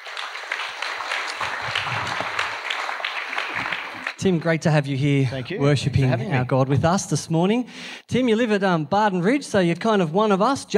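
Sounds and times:
audience applause at a church service: 0.0s - 4.8s
speech: 4.2s - 10.7s.

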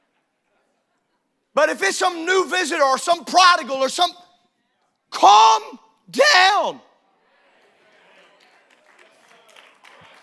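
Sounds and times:
speech: 1.6s - 4.2s, 5.2s - 6.9s
nervous clapping: 8.2s - 10.2s.

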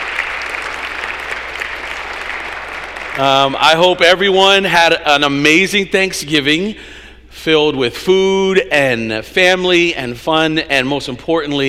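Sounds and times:
audience round of applause: 0.0s - 3.6s
speech: 3.2s - 11.6s.

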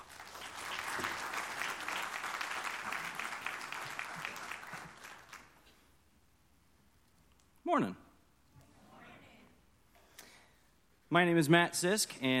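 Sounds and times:
church congregation applause welcoming a speaker: 0.0s - 5.7s
speech: 7.7s - 8.0s, 11.1s - 12.3s.

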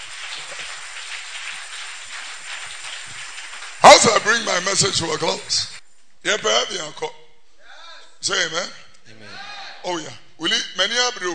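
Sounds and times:
audience clapping hands: 0.0s - 5.8s
speech: 3.9s - 7.2s, 8.2s - 11.3s.

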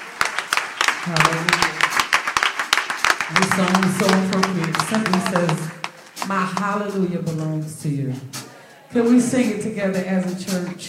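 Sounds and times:
church audience clapping hands: 0.0s - 7.5s
speech: 1.0s - 1.9s, 3.3s - 10.8s.

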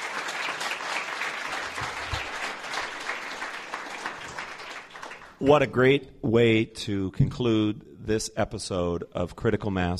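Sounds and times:
audience applause: 0.0s - 5.6s
speech: 5.4s - 9.9s.

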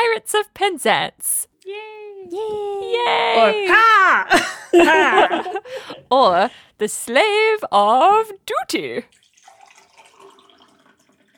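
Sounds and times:
speech: 0.2s - 9.2s
laughter: 3.3s - 6.2s
water being poured: 9.0s - 11.3s.

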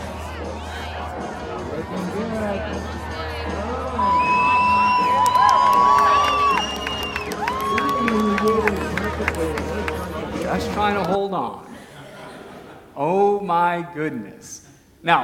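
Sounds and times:
rodeo crowd cheering during a bucking horse ride: 0.0s - 11.2s
high whoops and shouts: 3.8s - 8.6s
laughter: 5.7s - 13.0s
speech: 13.5s - 15.2s.

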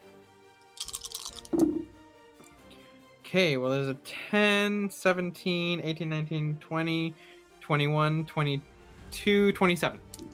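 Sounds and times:
dice being rolled: 0.8s - 1.8s
speech: 3.3s - 10.3s.

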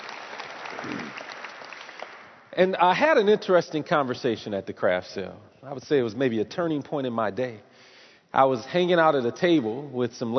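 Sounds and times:
audience applause at a community gathering: 0.0s - 2.4s
speech: 2.6s - 7.7s, 8.3s - 10.3s.

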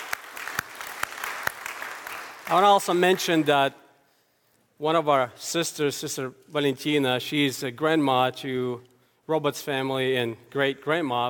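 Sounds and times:
audience clapping: 0.0s - 3.5s
speech: 2.5s - 3.8s, 4.8s - 11.2s.

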